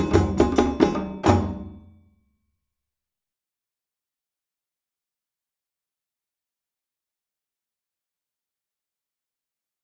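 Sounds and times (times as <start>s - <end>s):
djembe playing a full traditional rhythm: 0.0s - 1.9s.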